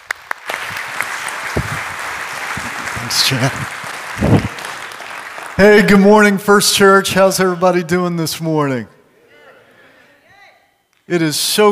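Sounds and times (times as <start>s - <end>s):
church congregation applause welcoming a guest speaker: 0.0s - 6.6s
speech: 3.1s - 4.4s, 5.6s - 9.0s, 11.1s - 11.7s.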